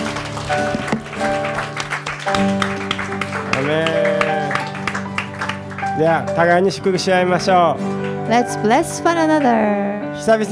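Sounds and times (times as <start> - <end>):
audience clapping: 0.0 - 9.6
speech: 6.0 - 10.5.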